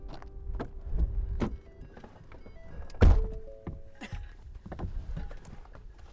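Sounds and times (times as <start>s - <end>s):
clunks, clicks and rustling as people climb in: 0.1s - 6.1s
pickup truck door slamming shut: 0.9s - 1.7s, 2.7s - 3.9s.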